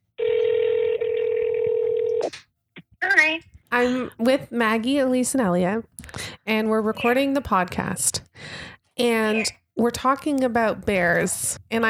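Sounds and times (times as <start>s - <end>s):
steady mid-pitched telephone tone droning: 0.2s - 2.3s
speech: 3.4s - 8.2s, 9.0s - 11.8s.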